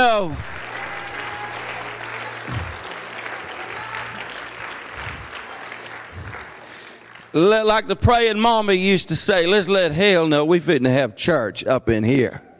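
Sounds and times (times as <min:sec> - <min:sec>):
speech: 0:00.0 - 0:00.6, 0:07.3 - 0:12.5
audience clapping hands: 0:00.0 - 0:08.0.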